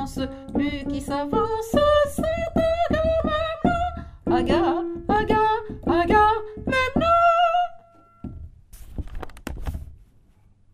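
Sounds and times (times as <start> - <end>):
soprano singing: 0.0 - 8.3.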